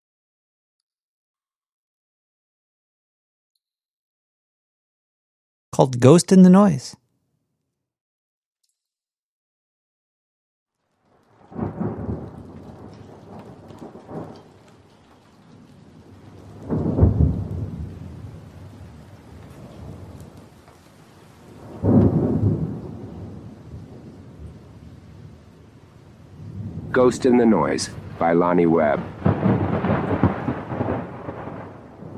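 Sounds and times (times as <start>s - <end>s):
speech: 5.7s - 7.0s, 27.0s - 29.2s
steady heavy pelting rain: 10.8s - 32.1s
thunder rumbling in a hurricane thunderstorm: 11.0s - 32.1s.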